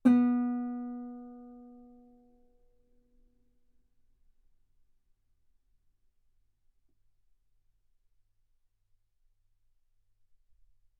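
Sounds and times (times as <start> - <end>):
guitar note B3: 0.0 - 1.9.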